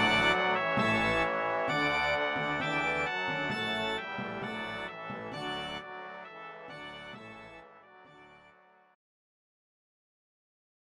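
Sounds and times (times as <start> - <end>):
organ: 0.0 - 8.5
brass: 0.0 - 9.0.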